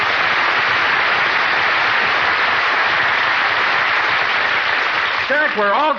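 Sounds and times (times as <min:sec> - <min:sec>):
audience applause: 0:00.0 - 0:05.9
speech: 0:05.5 - 0:05.9.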